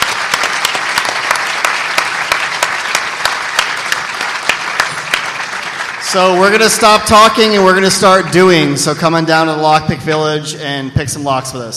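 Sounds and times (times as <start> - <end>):
audience applause: 0.0 - 8.7
speech: 6.1 - 11.7.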